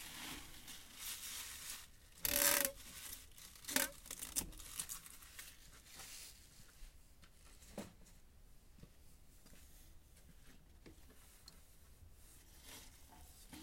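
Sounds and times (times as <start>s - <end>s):
crisp rustle of harvested greens bundles: 0.0s - 6.4s
soft steady hiss: 0.0s - 13.6s
sharp clicks and crinkles: 0.3s - 5.8s
tape pulling while wrapping bundles of harvested greens: 2.2s - 5.0s.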